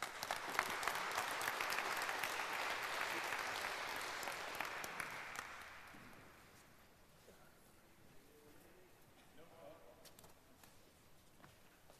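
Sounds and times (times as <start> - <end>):
audience applause: 0.0 - 6.3.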